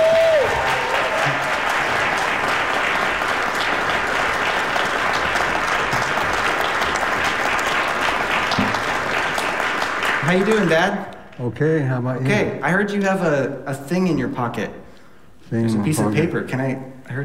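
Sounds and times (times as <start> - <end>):
audience applause: 0.0 - 11.0
speech: 10.3 - 14.8, 15.5 - 17.2.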